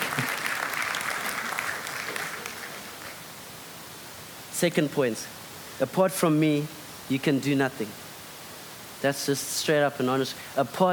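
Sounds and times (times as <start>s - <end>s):
audience applause: 0.0s - 3.2s
speech: 4.6s - 8.0s, 9.0s - 10.9s.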